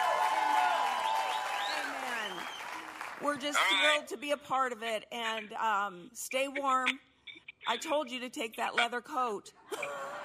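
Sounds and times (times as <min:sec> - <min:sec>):
audience clapping: 0:00.0 - 0:03.8
speech: 0:03.2 - 0:07.1, 0:07.7 - 0:10.2.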